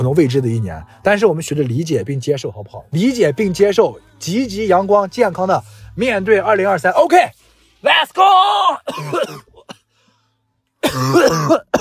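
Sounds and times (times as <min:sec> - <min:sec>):
speech: 0:00.0 - 0:09.5, 0:10.8 - 0:11.7
cough: 0:08.9 - 0:09.8, 0:10.8 - 0:11.7.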